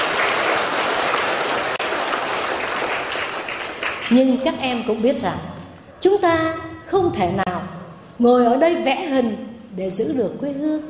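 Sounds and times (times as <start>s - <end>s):
applause: 0.0s - 4.8s
speech: 4.1s - 10.8s.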